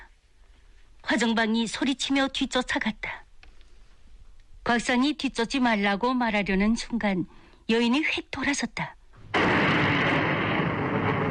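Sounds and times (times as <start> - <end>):
speech: 1.1 - 3.2, 4.7 - 9.6
hand grenade explosion: 9.3 - 11.2.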